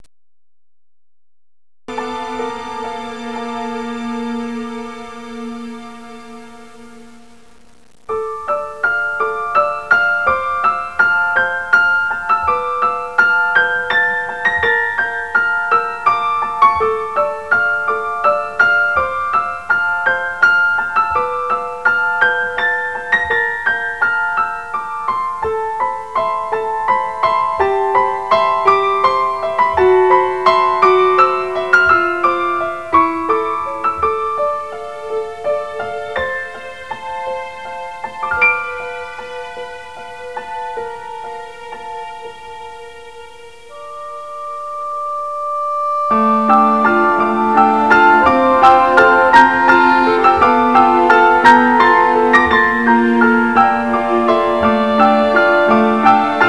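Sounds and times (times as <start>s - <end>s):
new age music: 1.9s - 7.4s, 8.1s - 56.4s.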